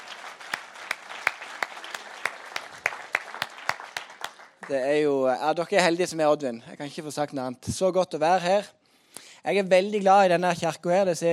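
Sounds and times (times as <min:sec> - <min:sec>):
audience applause: 0:00.0 - 0:04.8
speech: 0:04.7 - 0:08.8, 0:09.4 - 0:11.3.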